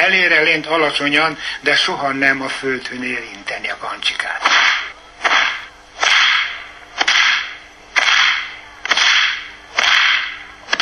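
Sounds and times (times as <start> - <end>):
speech: 0.2 - 4.8
whip cracking back and forth: 4.5 - 10.8.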